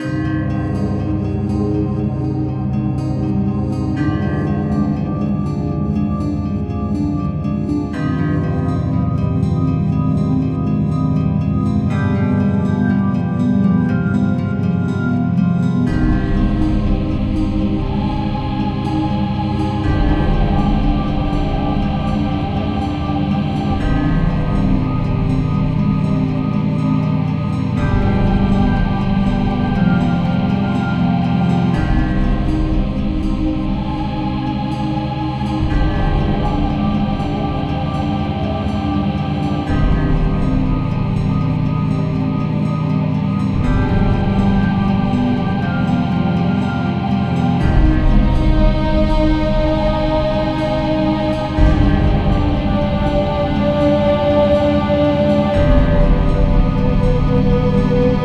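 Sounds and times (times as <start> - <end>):
town music: 0.0 - 58.2.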